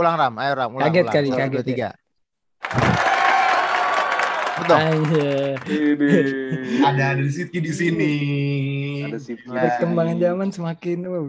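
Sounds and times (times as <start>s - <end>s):
speech: 0.0s - 2.0s, 4.6s - 11.2s
hand clapping applause: 2.6s - 6.0s.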